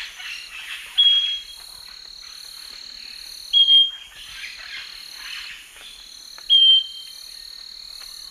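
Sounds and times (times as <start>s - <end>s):
Scaly-breasted Wren singing pure whistled notes: 1.0s - 1.6s, 3.5s - 4.1s, 6.5s - 7.2s.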